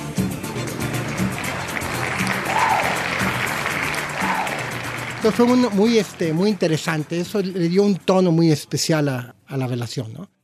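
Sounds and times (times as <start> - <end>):
applause: 0.2 - 8.3
speech: 5.2 - 10.4.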